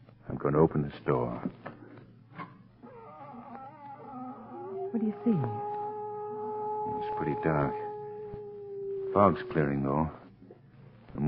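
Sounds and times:
speech: 0.4 - 1.6, 4.9 - 5.7, 6.9 - 7.8, 9.2 - 10.2
cat howling: 2.8 - 10.2.

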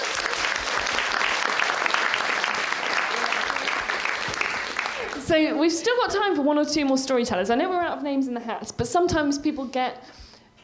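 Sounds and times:
crowd applauding: 0.0 - 5.4
speech: 5.3 - 10.2.

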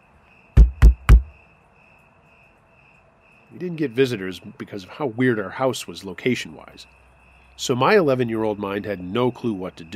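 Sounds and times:
knocking on a door: 0.6 - 1.4
speech: 3.5 - 7.0, 7.6 - 9.9.

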